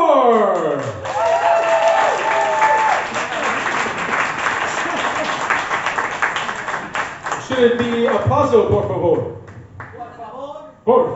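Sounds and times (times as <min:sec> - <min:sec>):
audience applause for a poet: 0:01.0 - 0:08.2
speech: 0:07.6 - 0:09.4, 0:10.9 - 0:11.1.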